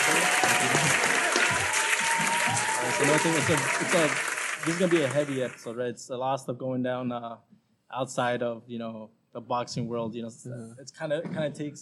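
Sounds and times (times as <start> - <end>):
crowd applause welcoming a boxing guest: 0.0 - 5.7
speech: 3.0 - 11.7.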